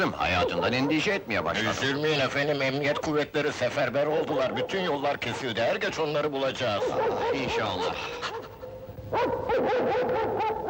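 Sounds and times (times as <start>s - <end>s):
speech: 0.0s - 8.4s, 9.1s - 10.6s
tracking dog barking and yelping: 0.2s - 1.2s, 6.7s - 10.6s.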